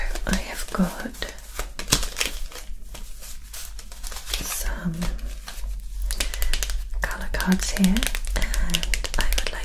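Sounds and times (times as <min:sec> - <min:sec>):
examination gloves being peeled off during an eye exam roleplay: 0:00.1 - 0:07.0, 0:07.6 - 0:09.5
speech: 0:00.3 - 0:01.4, 0:04.8 - 0:05.2, 0:07.5 - 0:08.8.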